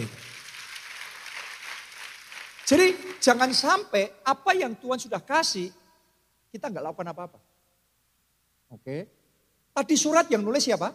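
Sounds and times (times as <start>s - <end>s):
audience applauding: 0.0s - 3.8s
speech: 2.7s - 5.8s, 6.5s - 7.5s, 8.7s - 9.2s, 9.8s - 10.9s.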